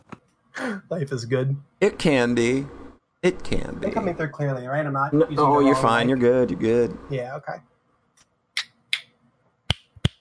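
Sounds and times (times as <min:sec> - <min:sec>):
speech: 0:00.6 - 0:07.7
finger snaps: 0:09.7 - 0:10.1.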